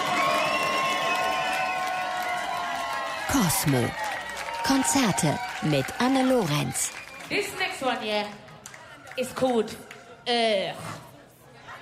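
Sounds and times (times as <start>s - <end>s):
live concert audience cheering and shouting: 0.0s - 7.5s
speech: 3.3s - 8.5s, 9.2s - 11.0s.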